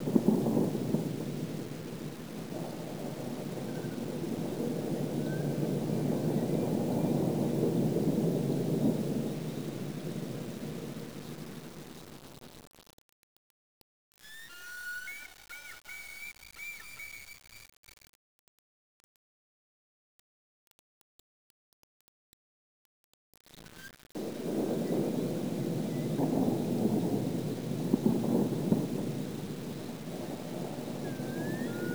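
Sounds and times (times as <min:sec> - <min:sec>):
thunder: 0:00.0 - 0:12.5, 0:24.2 - 0:31.9.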